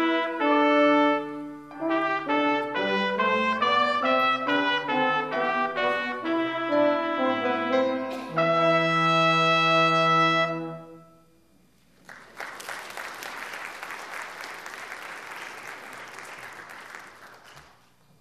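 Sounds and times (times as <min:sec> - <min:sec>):
brass ensemble playing an offertory: 0:00.0 - 0:11.3.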